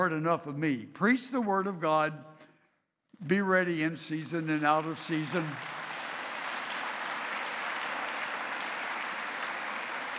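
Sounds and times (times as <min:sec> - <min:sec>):
speech: 0:00.0 - 0:02.5, 0:03.2 - 0:05.8
audience clapping: 0:04.4 - 0:10.1.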